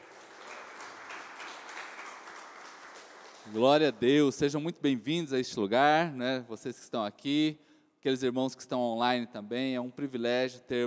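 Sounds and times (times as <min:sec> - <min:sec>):
audience applauding loudly: 0:00.0 - 0:04.1
speech: 0:03.4 - 0:10.8.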